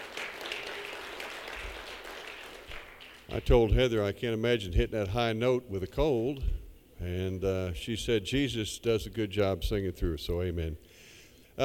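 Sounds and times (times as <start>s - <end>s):
audience applause: 0.0s - 3.3s
speech: 3.3s - 10.9s.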